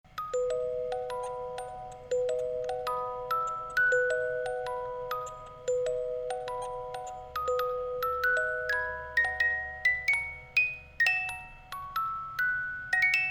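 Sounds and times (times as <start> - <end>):
music box: 0.1 - 13.3.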